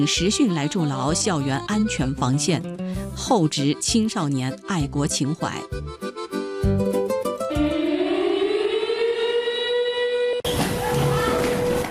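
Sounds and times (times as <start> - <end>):
speech: 0.0 - 7.0
air raid siren during evacuation drill: 7.5 - 11.8.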